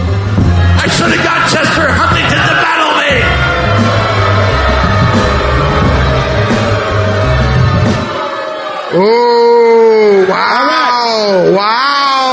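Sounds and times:
theater crowd jeering in disapproval: 0.2s - 12.3s.

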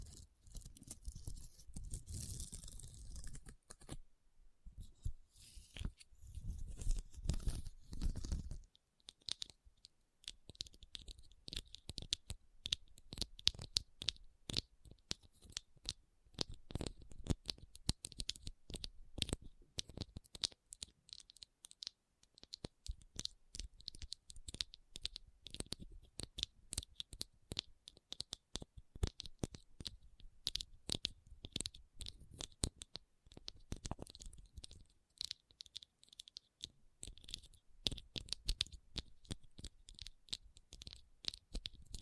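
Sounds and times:
tapping and scratching on rhinestones: 0.0s - 4.0s, 5.9s - 42.0s.

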